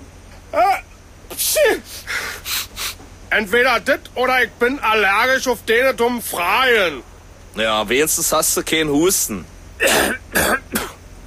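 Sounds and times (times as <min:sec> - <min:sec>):
person sneezing loudly: 0:00.6 - 0:03.0, 0:09.8 - 0:11.0
speech: 0:03.3 - 0:10.2.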